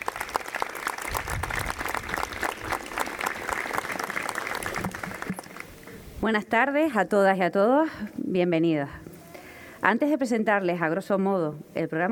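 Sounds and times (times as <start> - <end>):
audience applause: 0.0 - 5.7
speech: 6.2 - 9.0, 9.8 - 12.0.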